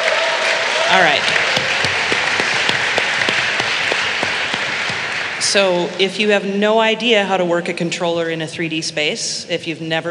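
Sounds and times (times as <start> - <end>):
audience clapping: 0.0 - 5.5
speech: 0.9 - 1.7, 5.5 - 10.0.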